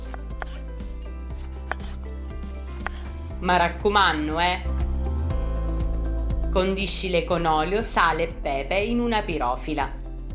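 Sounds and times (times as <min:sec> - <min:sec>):
knife dicing vegetables on a cutting board: 0:00.0 - 0:00.6, 0:01.4 - 0:02.0, 0:02.8 - 0:03.1
soft music: 0:00.0 - 0:10.3
speech: 0:03.4 - 0:04.7, 0:06.5 - 0:10.3.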